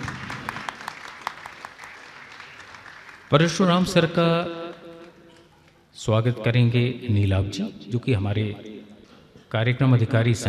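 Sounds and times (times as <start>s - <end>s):
audience applause: 0.0s - 3.4s
speech: 3.3s - 4.6s, 6.0s - 8.7s, 9.5s - 10.4s.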